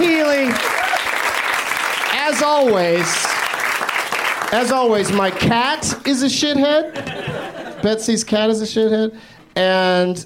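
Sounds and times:
crowd applause: 0.0 - 6.1
person whooping: 0.5 - 1.2
speech: 2.3 - 3.4, 4.5 - 10.2
laughter: 6.6 - 8.3.

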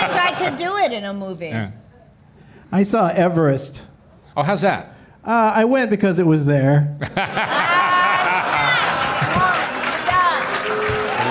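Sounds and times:
laughter: 0.0 - 0.6, 7.0 - 11.2
speech: 0.4 - 1.8, 2.7 - 7.8
audience booing: 7.5 - 11.2.

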